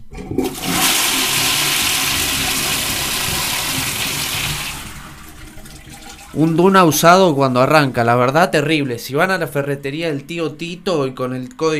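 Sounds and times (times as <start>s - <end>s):
pull-chain toilet flush: 0.0s - 7.9s
speech: 6.4s - 11.7s.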